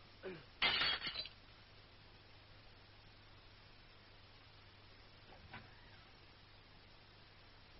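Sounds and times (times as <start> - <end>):
glass breaking: 0.6 - 1.4
vase of roses knocked over: 0.6 - 1.4.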